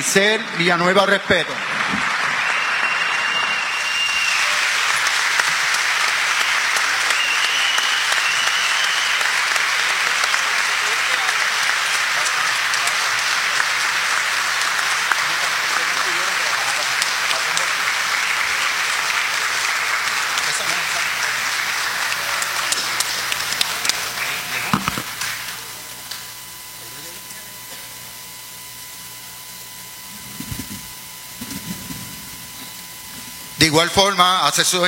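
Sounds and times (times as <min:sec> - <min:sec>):
speech: 0:00.0 - 0:02.1, 0:33.8 - 0:34.8
large crowd applauding: 0:00.6 - 0:27.2.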